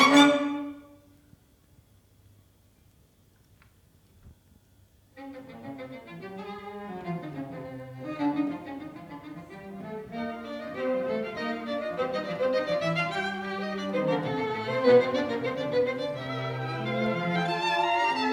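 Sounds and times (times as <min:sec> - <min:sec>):
string quartet: 0:00.0 - 0:01.0, 0:05.2 - 0:18.3.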